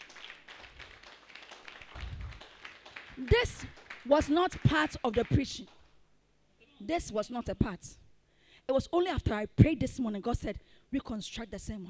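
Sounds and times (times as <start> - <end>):
audience clapping: 0.0 - 6.0
speech: 3.2 - 5.8, 6.8 - 8.0, 8.7 - 11.8.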